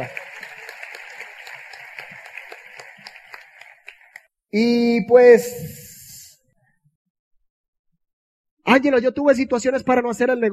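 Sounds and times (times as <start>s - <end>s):
speech: 0.0s - 0.2s, 4.5s - 5.8s, 8.7s - 10.5s
crowd applause: 0.0s - 4.3s.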